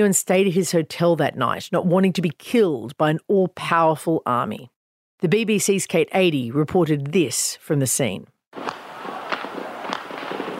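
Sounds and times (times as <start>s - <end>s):
speech: 0.0s - 8.8s
gunfire all over the centre of Peking: 8.6s - 10.5s.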